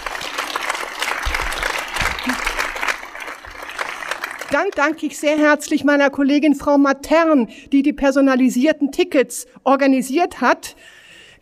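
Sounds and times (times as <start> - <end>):
audience applause: 0.0 - 5.1
speech: 4.5 - 11.4.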